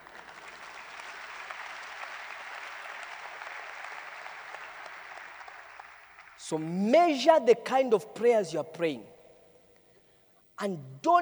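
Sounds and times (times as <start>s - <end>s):
audience clapping: 0.0s - 6.7s
speech: 6.4s - 9.1s, 10.6s - 11.2s.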